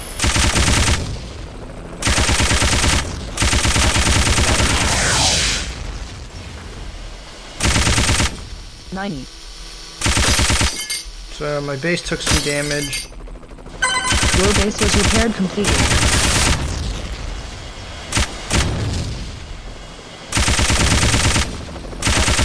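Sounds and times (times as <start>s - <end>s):
machine gun fire in a video game: 0.0s - 1.2s, 2.0s - 4.9s, 7.6s - 8.4s, 10.0s - 10.8s, 13.9s - 16.7s, 18.1s - 18.9s, 20.3s - 22.4s
low rumbling video game soundscape: 0.0s - 22.4s
speech: 9.0s - 9.4s, 11.4s - 13.2s, 14.4s - 16.1s.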